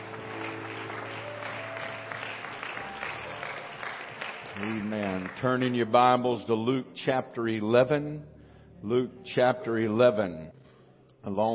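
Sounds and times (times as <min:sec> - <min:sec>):
audience clapping: 0:00.0 - 0:06.1
speech: 0:04.6 - 0:10.6, 0:11.2 - 0:11.5.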